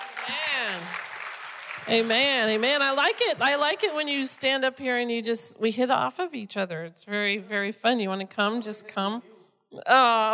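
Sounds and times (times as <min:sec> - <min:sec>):
audience clapping: 0:00.0 - 0:04.0
speech: 0:00.3 - 0:01.1, 0:01.8 - 0:10.3.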